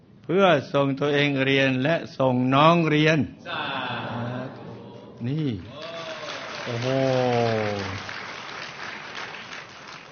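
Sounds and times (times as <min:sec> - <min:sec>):
speech: 0:00.3 - 0:04.1, 0:05.2 - 0:05.9, 0:06.6 - 0:08.1
soft audience clapping: 0:05.6 - 0:10.1.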